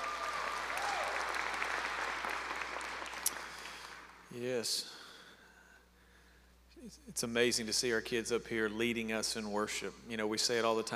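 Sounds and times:
audience clapping: 0.0s - 4.3s
speech: 4.4s - 5.0s, 6.8s - 10.9s.

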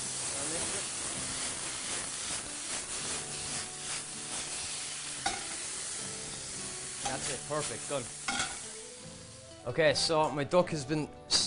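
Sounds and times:
soy sauce sizzling in a hot pan: 0.0s - 10.1s
whisk stirring through sauce: 0.8s - 5.5s
speech: 7.2s - 8.2s, 9.6s - 11.4s.

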